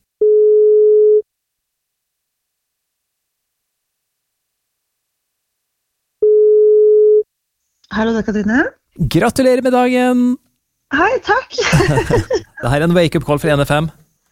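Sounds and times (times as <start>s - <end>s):
telephone ringback tone: 0.2s - 1.2s, 6.2s - 7.2s
speech: 7.9s - 14.0s
laughter: 11.6s - 12.6s.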